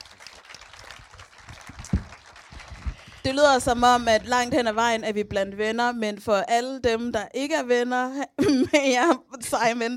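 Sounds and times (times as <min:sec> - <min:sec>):
applause: 0:00.0 - 0:03.8
speech: 0:03.2 - 0:09.9.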